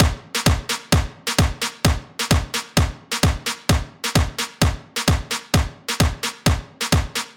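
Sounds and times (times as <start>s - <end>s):
electronic dance music with tresillo rhythm: 0.0s - 7.3s.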